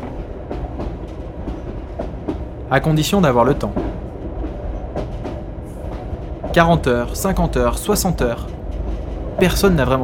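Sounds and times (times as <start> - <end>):
train running from Dakar to Bamako, Mali: 0.0 - 10.0
train wheels clacking over the rails: 0.0 - 10.0
speech: 2.7 - 3.9, 6.6 - 8.6, 9.4 - 10.0.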